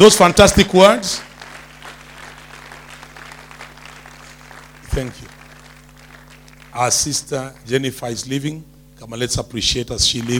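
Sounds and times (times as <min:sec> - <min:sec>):
speech: 0:00.0 - 0:01.3, 0:05.0 - 0:05.2, 0:06.8 - 0:10.3
audience applauding: 0:00.0 - 0:07.8.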